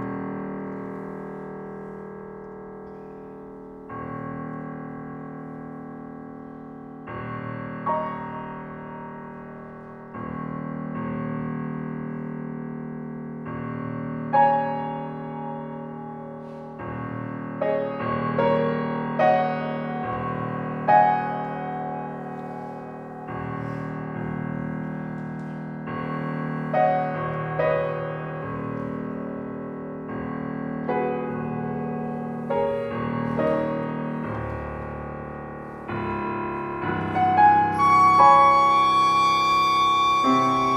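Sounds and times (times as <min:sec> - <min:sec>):
piano: 0:00.0 - 0:40.7
flute: 0:37.0 - 0:40.7.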